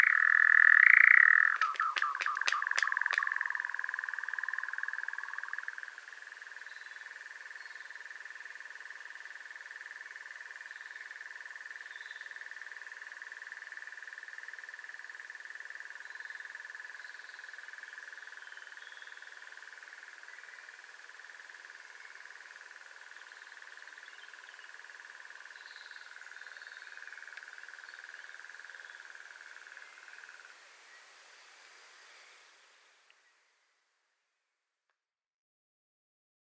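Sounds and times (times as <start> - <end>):
nightjar wings: 0.1 - 5.8.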